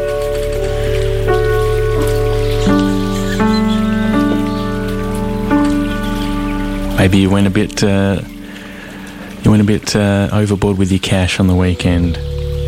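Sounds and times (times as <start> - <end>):
babbling brook water flowing: 0.0 - 12.6
sustained musical tones: 0.0 - 12.6
speech: 7.0 - 8.4, 9.4 - 12.3.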